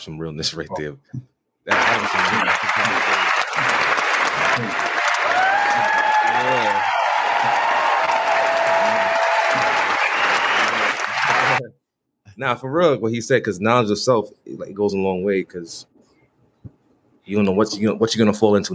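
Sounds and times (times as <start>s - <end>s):
speech: 0.0s - 3.1s, 4.6s - 5.0s, 6.4s - 6.9s, 12.4s - 15.9s, 17.3s - 18.7s
audience applause: 1.7s - 11.6s.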